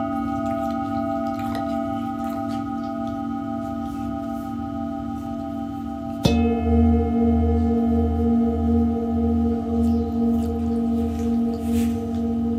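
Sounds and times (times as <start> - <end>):
low hum: 0.0 - 12.5
singing bowl ringing in sound healing: 0.0 - 12.5.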